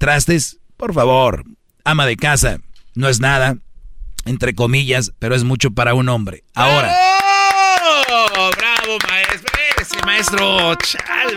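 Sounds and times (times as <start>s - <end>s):
speech: 0.0s - 3.6s, 4.2s - 7.2s, 8.9s - 11.3s
half-hearted slow handclaps: 7.1s - 11.3s.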